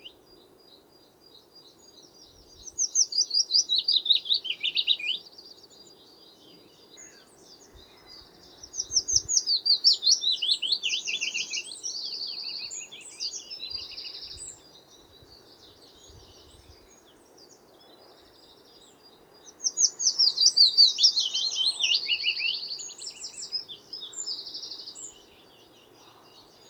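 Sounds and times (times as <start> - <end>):
willow warbler singing: 0.0 - 26.6.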